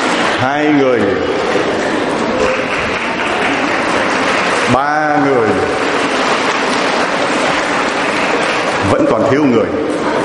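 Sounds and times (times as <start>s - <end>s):
murmuring voices: 0.3s - 10.2s
speech: 0.4s - 1.8s, 9.3s - 10.1s
applause from a group: 2.4s - 9.3s.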